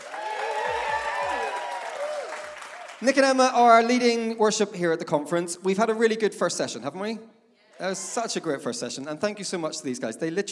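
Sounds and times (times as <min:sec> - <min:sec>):
conference audience applause welcoming two guests: 0:00.0 - 0:03.3
speech: 0:03.0 - 0:10.5.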